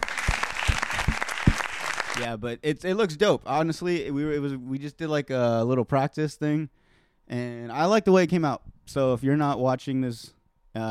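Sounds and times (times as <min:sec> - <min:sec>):
audience applause: 0:00.0 - 0:02.3
speech: 0:02.2 - 0:10.8.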